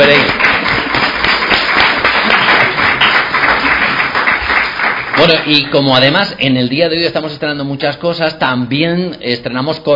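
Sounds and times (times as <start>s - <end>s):
audience applause: 0.0s - 6.2s
speech: 5.3s - 9.9s.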